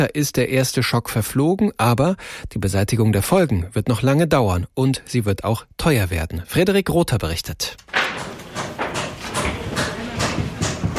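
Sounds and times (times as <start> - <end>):
speech: 0.0 - 8.3
hammering on the roof of the cathedral: 7.8 - 10.9
sawing on the roof of the cathedral: 7.8 - 10.9.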